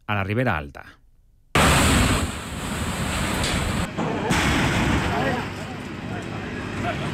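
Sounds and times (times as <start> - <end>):
blaze roaring with crackling and rumbling: 1.6 - 7.1.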